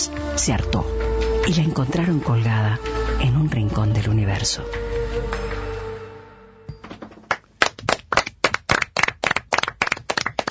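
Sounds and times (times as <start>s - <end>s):
speech: 0.0s - 5.0s
audience applause: 7.3s - 10.4s.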